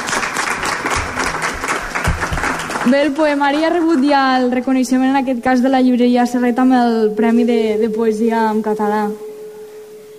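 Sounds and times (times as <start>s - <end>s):
audience applause after a poetry reading: 0.0s - 4.1s
speech: 2.8s - 9.2s.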